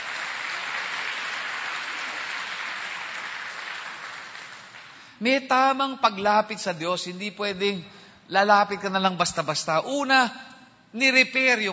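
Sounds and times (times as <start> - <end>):
church congregation applauding: 0.0 - 5.2
speech: 5.2 - 11.7.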